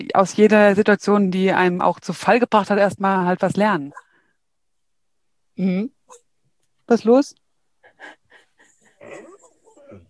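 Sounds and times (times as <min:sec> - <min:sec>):
speech: 0:00.0 - 0:04.0, 0:05.6 - 0:06.2, 0:06.9 - 0:07.4
dog whining: 0:08.9 - 0:10.0.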